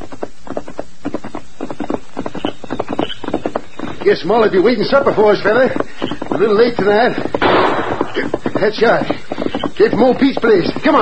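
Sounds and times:
horse hooves clip-clopping while riding at night: 0.0s - 11.0s
speech: 4.0s - 7.3s, 8.6s - 9.2s, 9.8s - 11.0s.

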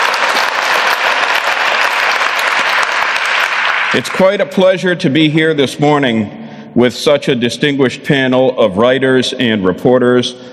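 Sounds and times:
audience applause: 0.0s - 4.2s
speech: 3.9s - 10.5s.

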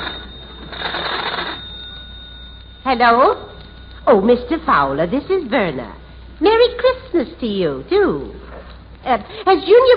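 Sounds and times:
tinny telephone ringing over the line: 0.0s - 6.0s
faint hum: 0.0s - 9.9s
speech: 2.8s - 8.4s, 9.0s - 9.9s.

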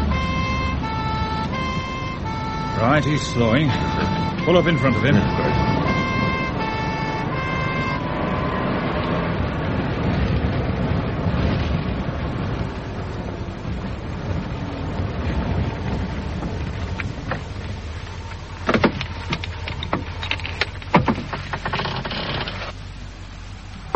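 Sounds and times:
two-tone police car siren during a pursuit: 0.0s - 11.0s
police car engine and road noise: 0.0s - 23.9s
speech: 2.8s - 5.6s.

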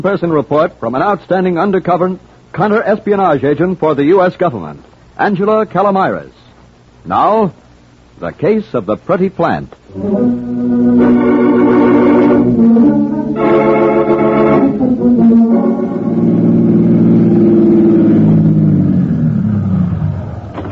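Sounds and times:
speech: 0.0s - 6.4s, 7.0s - 7.6s, 8.2s - 11.3s
car engine drone in city traffic: 9.8s - 20.7s.

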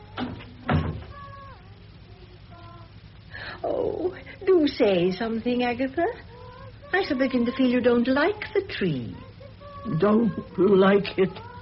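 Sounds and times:
door being shut: 0.2s - 1.2s
speech: 3.6s - 6.3s, 6.9s - 11.5s.

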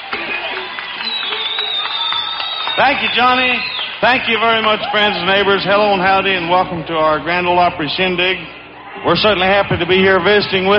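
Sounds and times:
audience applauding at the Grand Ole Opry show: 0.0s - 5.5s
speech: 2.8s - 10.7s.

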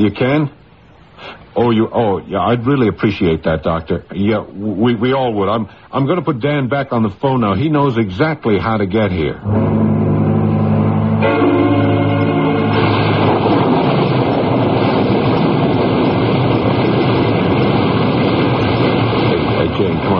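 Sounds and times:
speech: 0.0s - 0.6s, 1.2s - 10.0s, 11.2s - 11.9s
storm over the ocean: 9.4s - 20.1s.

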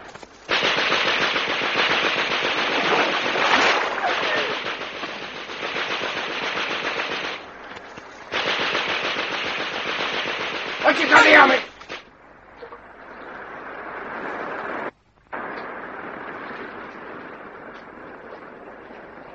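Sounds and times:
machine gun fire: 0.5s - 7.6s, 8.3s - 12.1s.

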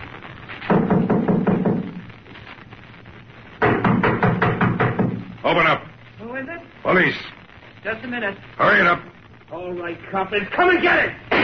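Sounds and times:
knocking on a door: 0.7s - 2.1s, 3.6s - 5.4s
speech: 5.5s - 11.2s.

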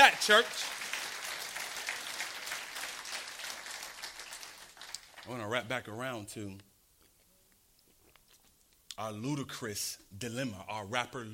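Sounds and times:
audience hand clapping: 0.0s - 5.6s
speech: 0.3s - 0.8s, 5.3s - 6.7s, 9.0s - 11.3s.

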